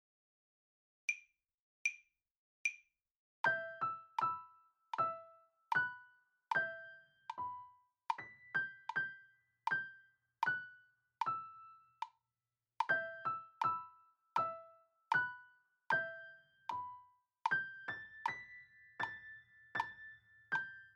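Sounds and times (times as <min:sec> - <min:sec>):
slow piano: 0:03.5 - 0:12.0, 0:12.8 - 0:20.9.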